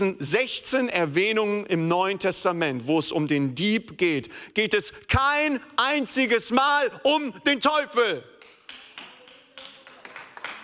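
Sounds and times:
speech: 0.0s - 8.3s
audience clapping: 8.3s - 10.6s.

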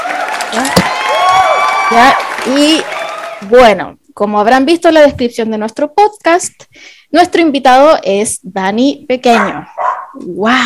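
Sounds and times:
applause: 0.0s - 3.7s
speech: 1.9s - 10.6s.

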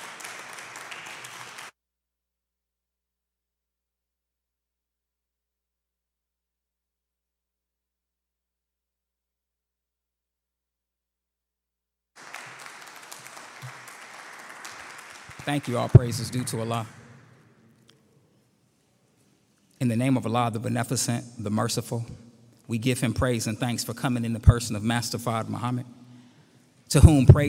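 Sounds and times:
audience applause: 0.0s - 1.7s, 12.2s - 17.2s
speech: 15.4s - 17.0s, 19.8s - 26.0s, 26.9s - 27.4s.

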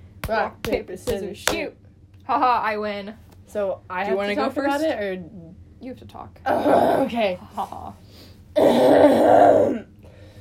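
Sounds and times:
speech: 0.3s - 9.9s
person clearing throat: 6.5s - 7.2s, 8.6s - 9.9s.

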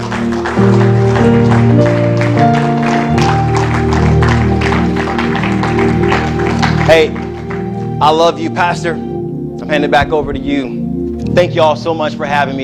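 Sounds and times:
audience clapping hands: 0.0s - 8.8s
speech: 8.0s - 12.6s.

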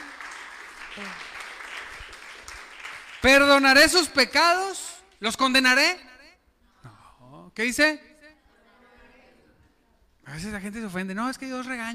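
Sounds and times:
audience applauding: 0.0s - 4.0s
speech: 1.0s - 1.3s, 3.2s - 6.1s, 7.6s - 8.1s, 10.3s - 11.9s.

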